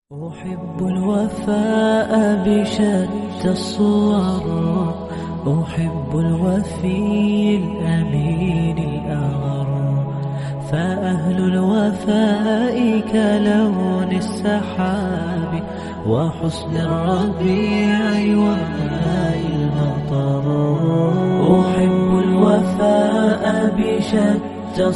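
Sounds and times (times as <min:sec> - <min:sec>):
Islamic loyalty nasheed singing: 0:00.1 - 0:24.9.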